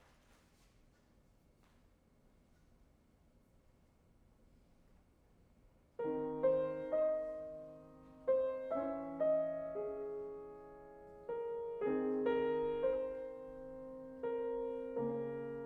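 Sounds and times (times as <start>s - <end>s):
piano: 4.5s - 15.6s.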